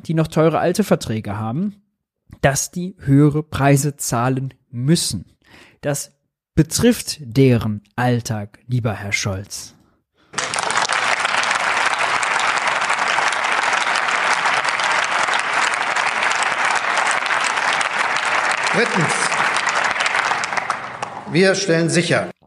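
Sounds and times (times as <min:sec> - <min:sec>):
speech: 0:00.0 - 0:01.8, 0:02.4 - 0:09.8, 0:18.8 - 0:19.3, 0:21.3 - 0:22.4
parliament applause from coalition colleagues: 0:10.3 - 0:21.9.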